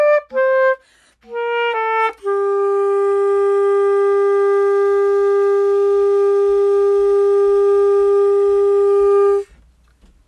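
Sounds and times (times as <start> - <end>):
clarinet: 0.0 - 9.7.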